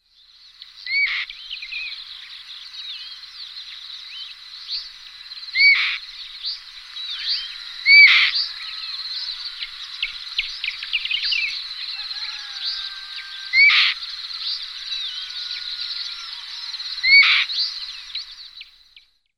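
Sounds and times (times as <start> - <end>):
Elanus caeruleus: 5.5 - 18.9.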